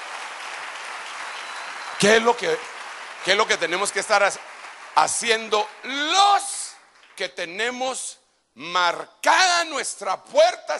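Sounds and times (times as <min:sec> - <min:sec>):
audience applause during a sermon: 0:00.0 - 0:07.2
speech: 0:02.0 - 0:06.2, 0:07.2 - 0:10.7.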